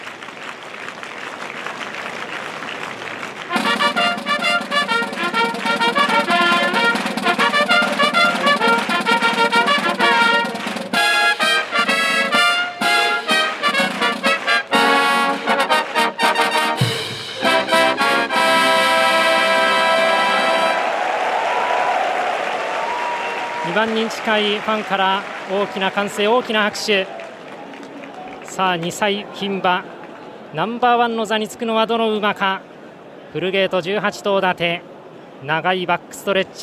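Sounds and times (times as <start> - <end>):
university brass band fanfare before horse race: 3.4 - 25.8
speech: 23.9 - 27.2, 28.6 - 32.7, 33.3 - 36.6.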